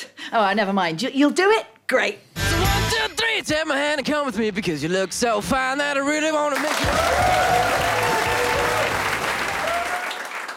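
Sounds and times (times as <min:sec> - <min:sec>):
speech: 0:00.3 - 0:02.3, 0:03.4 - 0:08.0
audience applause: 0:06.6 - 0:10.5.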